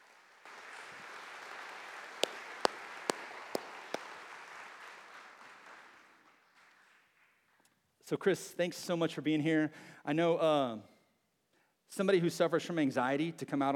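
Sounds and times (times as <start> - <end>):
audience applause: 0.0 - 6.3
speech: 8.1 - 10.9, 11.9 - 13.7.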